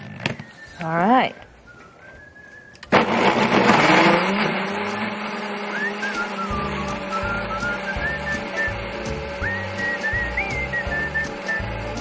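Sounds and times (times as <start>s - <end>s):
speech: 0.8s - 1.5s
blender or food processor blending ingredients: 2.9s - 11.9s.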